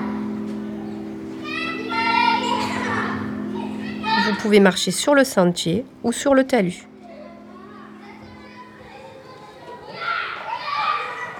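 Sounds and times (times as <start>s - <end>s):
children shouting while playing outdoors: 0.0s - 4.7s, 7.0s - 11.3s
speech: 4.3s - 6.9s.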